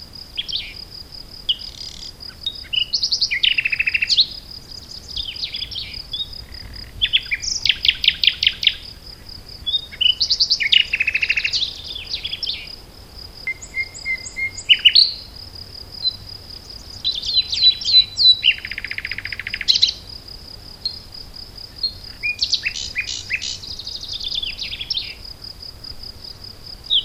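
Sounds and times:
Common nightingale singing: 0.4s - 0.8s, 1.5s - 12.8s, 13.5s - 15.3s, 16.0s - 20.1s, 21.8s - 25.2s, 26.9s - 27.0s.

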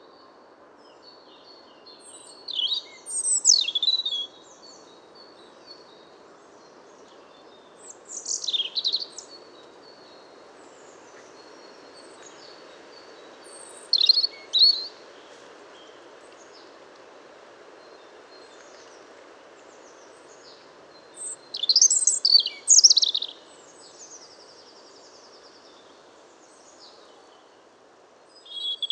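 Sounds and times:
background hiss: 0.0s - 28.9s
European robin singing: 1.0s - 6.0s, 6.6s - 10.1s, 10.7s - 16.7s, 19.9s - 27.1s, 28.3s - 28.9s.

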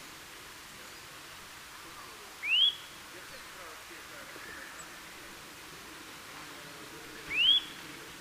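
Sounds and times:
Eurasian nuthatch Sitta europaea giving rising whistled calls: 2.4s - 3.0s, 7.3s - 7.8s.

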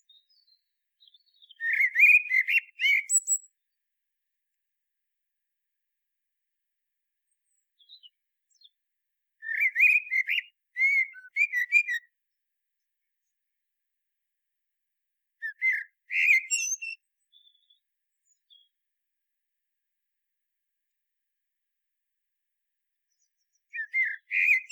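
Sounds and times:
common blackbird singing: 0.0s - 3.6s, 7.8s - 8.8s, 9.4s - 12.1s, 15.4s - 18.7s, 23.1s - 24.6s.

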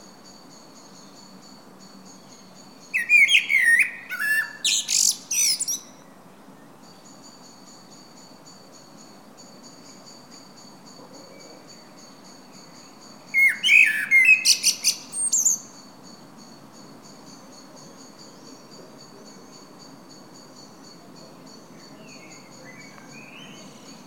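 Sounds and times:
common blackbird singing: 2.8s - 5.9s, 13.3s - 15.8s, 21.9s - 24.0s.

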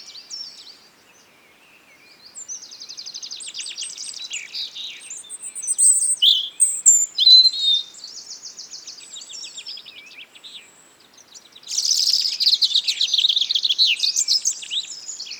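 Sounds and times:
European robin song: 0.0s - 15.3s.

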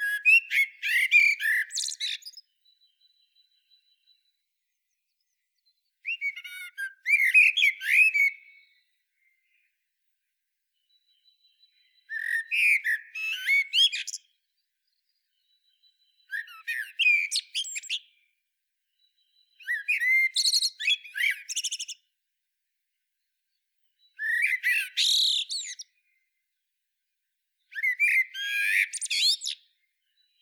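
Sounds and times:
Eurasian blackbird singing: 0.0s - 9.8s, 10.8s - 18.3s, 18.9s - 22.1s, 23.9s - 26.3s, 27.7s - 30.4s.

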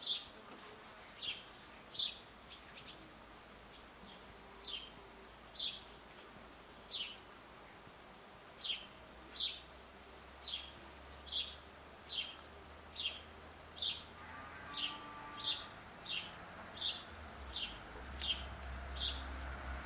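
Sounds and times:
house sparrow Passer domesticus giving loud bright chirps: 0.0s - 0.3s, 1.1s - 6.0s, 6.8s - 7.2s, 8.6s - 9.8s, 10.4s - 14.1s, 14.7s - 19.8s.

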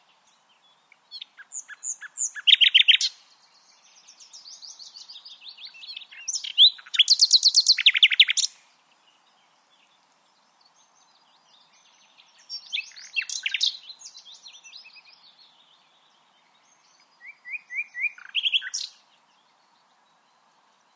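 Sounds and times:
Common nightingale song: 1.1s - 10.3s, 11.0s - 15.4s, 16.7s - 19.6s.

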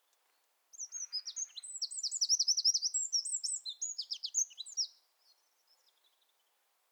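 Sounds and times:
Eurasian wren singing: 0.7s - 4.9s.

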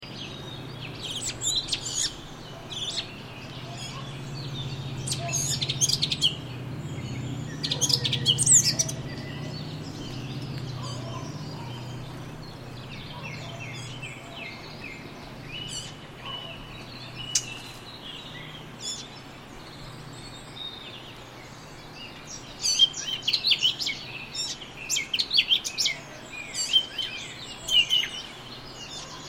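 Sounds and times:
Sylvia atricapilla singing: 0.0s - 29.2s.

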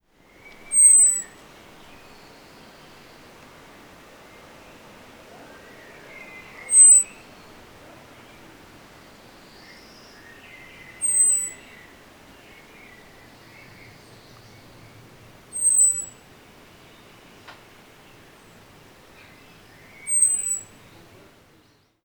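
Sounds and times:
faint hiss: 0.0s - 22.0s
common blackbird high whistle: 0.7s - 1.3s, 6.3s - 7.2s, 11.0s - 11.6s, 15.5s - 16.2s, 20.0s - 20.8s.

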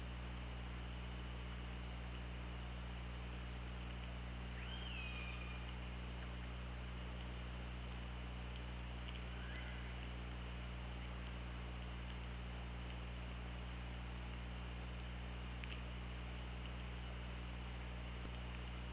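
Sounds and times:
low hum: 0.0s - 18.9s
killer whale calls: 4.5s - 5.7s.

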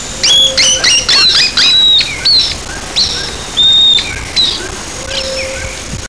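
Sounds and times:
loud continuous rushing noise: 0.0s - 6.0s
bird chirps and thin whistles: 0.2s - 5.8s.

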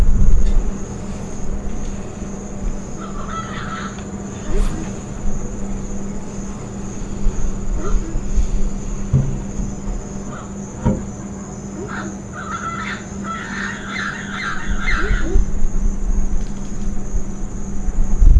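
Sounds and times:
low rumbling: 0.0s - 18.3s
steady low hum: 0.0s - 18.3s
bird harsh chattering calls: 2.9s - 5.2s, 10.2s - 10.6s, 11.6s - 15.5s.

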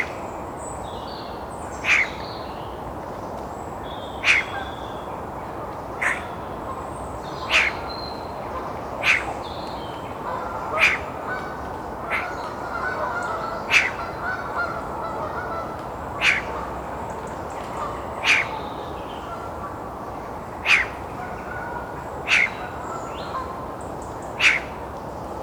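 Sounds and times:
faint higher bird sounds: 0.0s - 25.4s
Eurasian magpie harsh chacking calls: 1.8s - 2.2s, 4.2s - 4.8s, 6.0s - 6.4s, 7.4s - 8.1s, 9.0s - 9.4s, 10.6s - 11.5s, 12.1s - 14.6s, 16.2s - 16.6s, 18.2s - 18.6s, 20.6s - 21.1s, 22.2s - 22.8s, 24.4s - 24.7s.

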